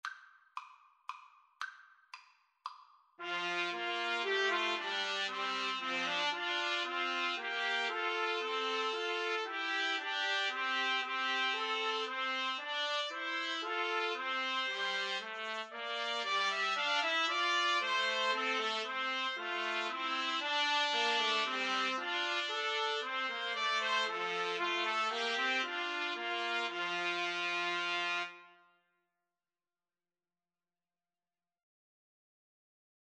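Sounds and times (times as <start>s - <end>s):
trumpet trio playing: 3.2s - 28.6s.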